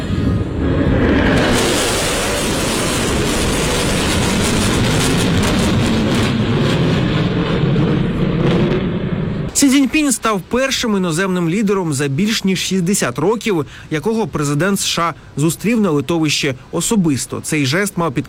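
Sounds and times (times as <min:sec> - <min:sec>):
jet bombers flying overhead: 0:00.0 - 0:09.6
speech: 0:10.1 - 0:18.2.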